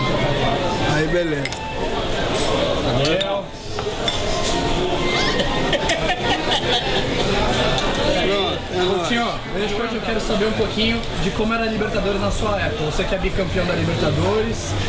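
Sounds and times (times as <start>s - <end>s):
steady babble of chattering voices: 0.0s - 14.8s
speech: 1.0s - 2.0s, 2.9s - 4.2s, 6.0s - 14.8s
dishes and cutlery clinking: 1.4s - 6.2s
laughter: 4.9s - 7.8s.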